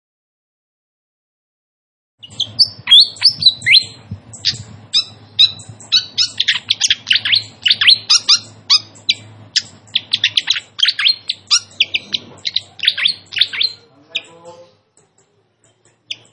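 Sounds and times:
flycatcher giving sharp high notes: 0:02.2 - 0:14.8.

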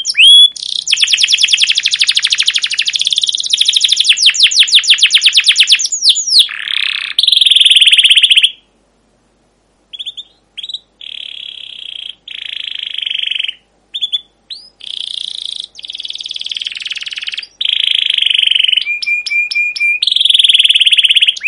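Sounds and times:
canary song: 0:00.0 - 0:08.8, 0:09.8 - 0:21.4.

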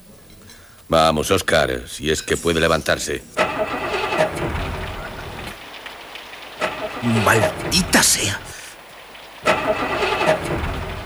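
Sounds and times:
speech: 0:00.9 - 0:04.6, 0:07.0 - 0:08.6, 0:09.6 - 0:10.5
car engine cranking but failing to start: 0:03.4 - 0:08.3, 0:09.3 - 0:11.0.

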